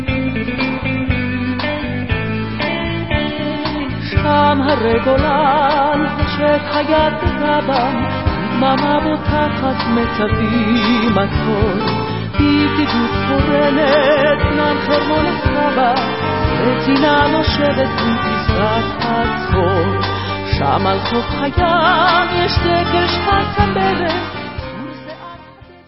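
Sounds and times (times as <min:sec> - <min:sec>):
vocals: 0:00.1 - 0:25.8.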